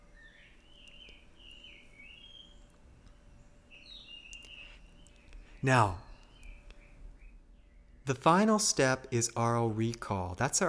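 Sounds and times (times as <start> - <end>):
jungle bird calling outdoors: 0.0 - 2.8, 3.7 - 8.2
steady low hum of ambient noise: 0.0 - 10.6
speech: 5.6 - 6.0, 8.1 - 10.6.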